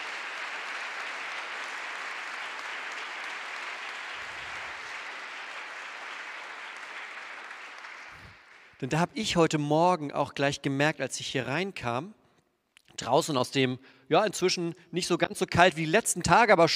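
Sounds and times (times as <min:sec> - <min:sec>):
crowd clapping: 0:00.0 - 0:09.0
speech: 0:08.8 - 0:12.2, 0:13.0 - 0:16.7.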